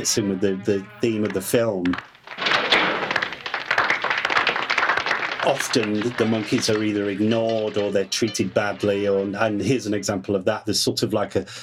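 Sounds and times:
speech: 0:00.0 - 0:02.1, 0:05.4 - 0:11.6
slow grudging hand clapping: 0:01.2 - 0:08.0.

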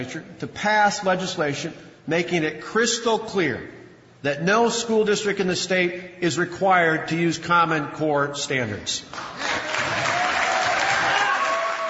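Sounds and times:
speech: 0:00.0 - 0:10.0
audience applause in a state legislature chamber for the governor's speech: 0:09.2 - 0:11.8.

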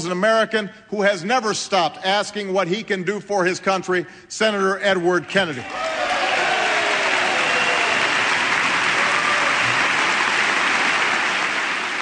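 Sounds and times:
speech: 0:00.0 - 0:06.2
applause and cheers in chamber: 0:05.6 - 0:12.0.

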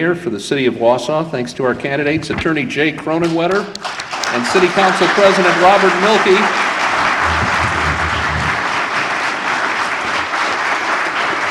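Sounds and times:
speech: 0:00.0 - 0:06.7
audience applause: 0:05.0 - 0:11.4.

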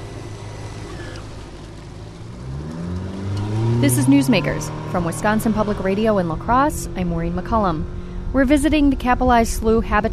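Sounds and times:
motorboat engine accelerating up onto plane: 0:00.0 - 0:10.1
speech: 0:03.8 - 0:10.1.

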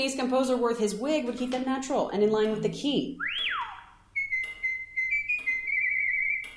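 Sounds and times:
speech: 0:00.0 - 0:03.7
starling whistling a melody: 0:03.2 - 0:06.5.

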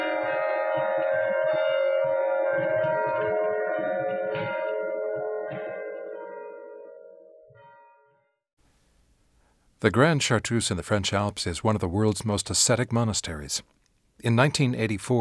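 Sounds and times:
bells at Christ Church in Philadelphia ringing: 0:00.0 - 0:08.4
speech: 0:09.8 - 0:15.2.

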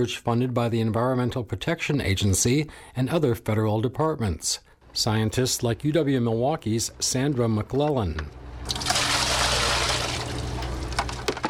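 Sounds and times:
speech: 0:00.0 - 0:08.9
bucket of Lake Michigan Harbor water being dumped: 0:08.6 - 0:11.4.

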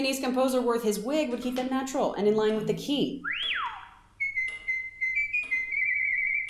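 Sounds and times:
speech: 0:00.0 - 0:03.7
starling whistling an altered melody: 0:03.2 - 0:06.4.

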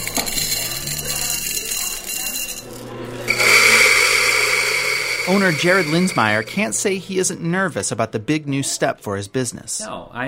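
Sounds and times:
coffee grinder grinding beans: 0:00.0 - 0:07.0
speech: 0:05.3 - 0:10.2.

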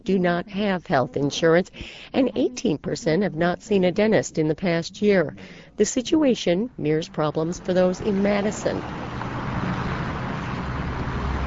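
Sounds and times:
speech: 0:00.0 - 0:09.2
traffic passing a health clinic on East Washington Avenue: 0:06.8 - 0:11.4.

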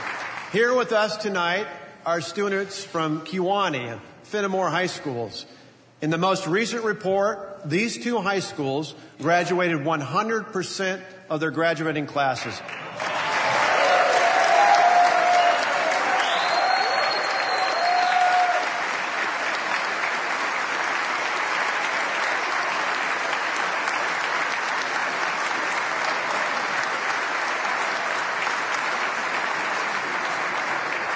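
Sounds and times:
audience applause: 0:00.0 - 0:00.5, 0:12.6 - 0:31.1
speech: 0:00.5 - 0:13.1.

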